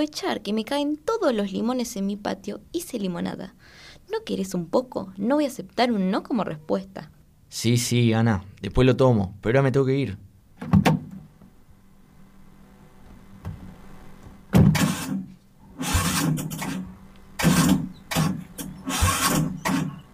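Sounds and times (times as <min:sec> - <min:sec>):
speech: 0:00.0 - 0:10.8
car engine cranking but failing to start: 0:15.8 - 0:16.8, 0:17.4 - 0:20.0.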